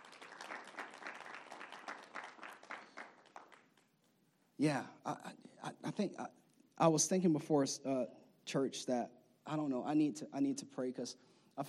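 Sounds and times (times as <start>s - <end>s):
audience clapping: 0.0s - 4.1s
speech: 4.6s - 11.6s.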